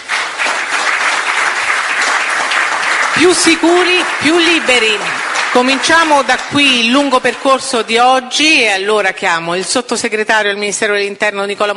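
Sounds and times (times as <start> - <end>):
audience applause: 0.0 - 7.6
speech: 3.2 - 11.7.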